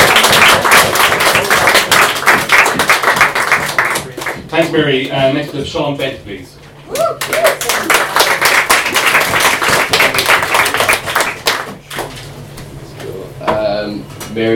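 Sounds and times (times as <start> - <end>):
audience clapping: 0.0 - 5.2, 7.0 - 12.2
speech: 4.6 - 7.6, 14.4 - 14.5.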